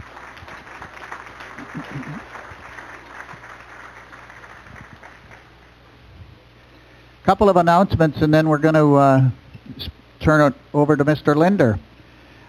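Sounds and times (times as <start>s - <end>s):
audience round of applause: 0.0s - 5.7s
speech: 1.8s - 2.4s, 7.3s - 11.9s.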